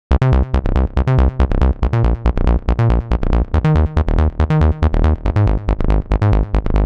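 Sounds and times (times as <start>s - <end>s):
house bass in C minor: 0.1s - 6.8s.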